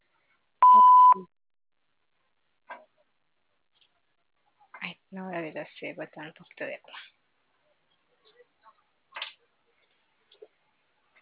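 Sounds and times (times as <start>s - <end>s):
voicemail beep tone: 0.6s - 1.3s
speech: 5.5s - 7.2s.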